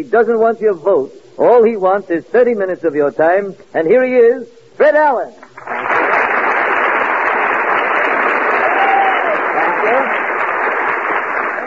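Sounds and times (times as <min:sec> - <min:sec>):
speech: 0:00.0 - 0:05.7
studio audience applause: 0:05.4 - 0:11.6
faint cheers and whistles from studio audience: 0:08.3 - 0:10.0.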